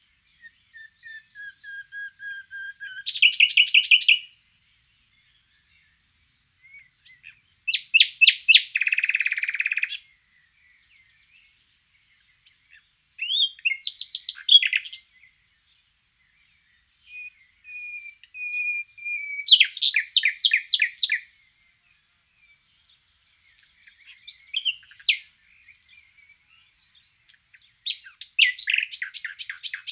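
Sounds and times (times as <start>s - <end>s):
common nightingale song: 0.0s - 29.9s.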